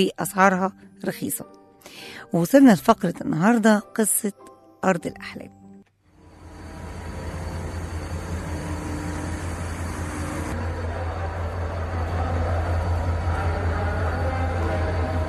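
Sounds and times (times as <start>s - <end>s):
speech: 0.0s - 5.6s
low hum: 6.2s - 15.2s
station ambience at Misr railway station in Cairo: 6.2s - 15.2s.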